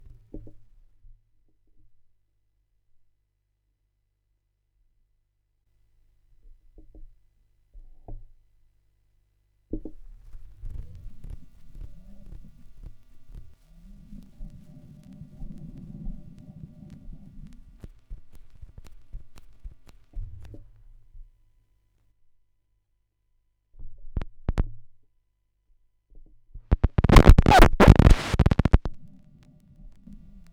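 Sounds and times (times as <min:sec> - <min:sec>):
vinyl record noise: 0:10.2 - 0:20.9, 0:26.7 - 0:30.5.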